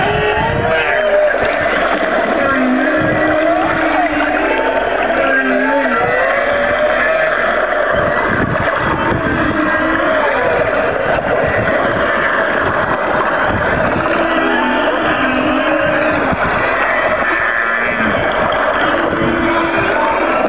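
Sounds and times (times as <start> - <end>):
humpback whale song: 0.0 - 20.4.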